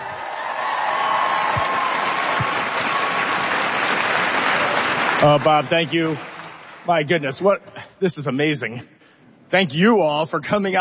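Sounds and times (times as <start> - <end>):
audience applause: 0.0 - 7.2
speech: 5.2 - 6.3, 6.9 - 10.8.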